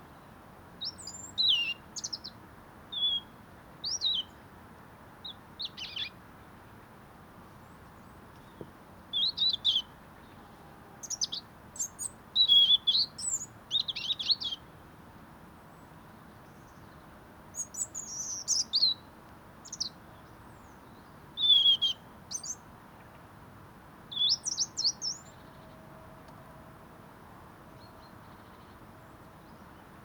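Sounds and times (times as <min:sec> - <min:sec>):
European robin singing: 0:00.8 - 0:04.4, 0:07.6 - 0:14.6, 0:16.5 - 0:22.6, 0:24.1 - 0:25.8.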